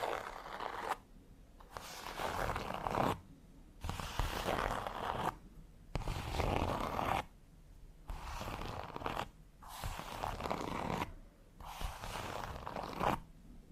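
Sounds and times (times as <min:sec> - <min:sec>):
fingernails scratching textured leather: 0:00.0 - 0:01.0, 0:01.7 - 0:03.2, 0:03.8 - 0:05.4, 0:06.0 - 0:07.3, 0:08.1 - 0:13.2.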